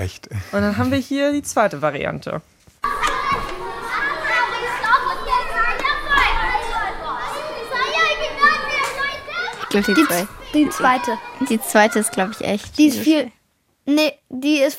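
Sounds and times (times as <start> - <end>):
speech: 0.0 - 2.5, 9.8 - 14.7
children shouting and chattering: 2.8 - 13.3.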